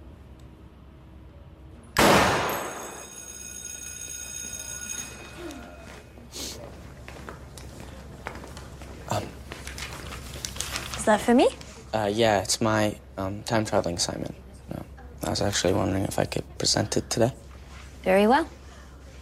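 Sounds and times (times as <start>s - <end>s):
gunshot fired at a target: 2.0s - 3.0s
speech: 11.1s - 14.4s, 15.4s - 17.4s, 18.0s - 18.6s.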